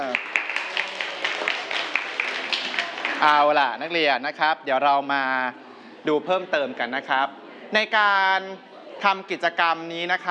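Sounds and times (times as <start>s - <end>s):
group of students clapping: 0.0s - 3.6s
speech: 3.2s - 10.2s.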